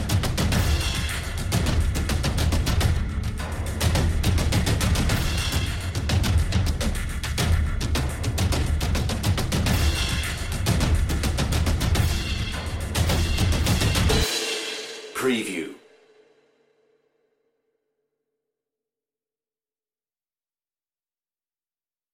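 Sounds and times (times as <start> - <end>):
drums: 0.0 - 15.8.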